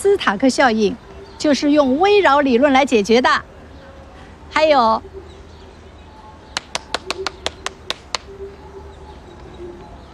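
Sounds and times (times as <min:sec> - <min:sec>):
speech: 0:00.0 - 0:03.5, 0:04.5 - 0:05.2
hands clapping: 0:06.6 - 0:08.3.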